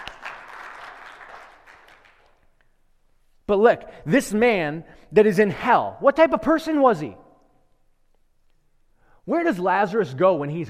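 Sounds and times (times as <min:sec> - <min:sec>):
audience applause: 0:00.0 - 0:02.4
speech: 0:03.5 - 0:07.2, 0:09.3 - 0:10.6.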